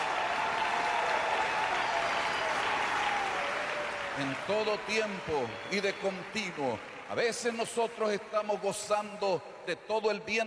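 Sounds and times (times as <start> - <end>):
voices cheering: 0.0 - 7.7
audience applauding: 0.0 - 8.6
speech: 4.2 - 10.4.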